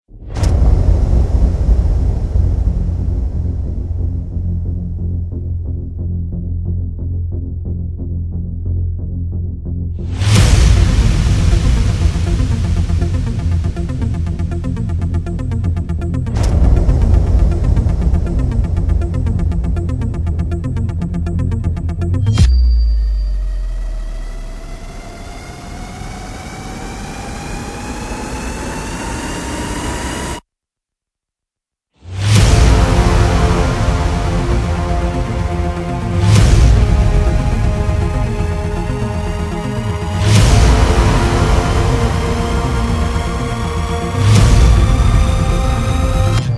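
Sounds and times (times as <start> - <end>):
trailer music: 0.1 - 30.4, 32.0 - 46.5.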